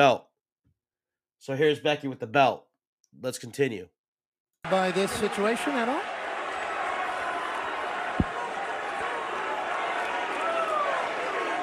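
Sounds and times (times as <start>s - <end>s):
speech: 0.0s - 0.3s, 1.4s - 4.0s, 4.6s - 6.2s
wrestling crowd chanting: 4.7s - 11.6s.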